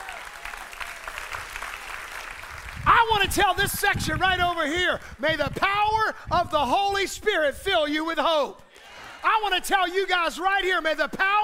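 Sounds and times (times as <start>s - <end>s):
church congregation clapping during worship: 0.0s - 6.0s
speech: 3.0s - 11.4s.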